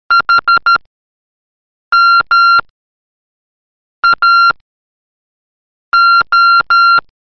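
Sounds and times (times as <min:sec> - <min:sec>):
morse code signal: 0:00.1 - 0:00.8, 0:01.9 - 0:02.7, 0:04.0 - 0:04.6, 0:05.9 - 0:07.1.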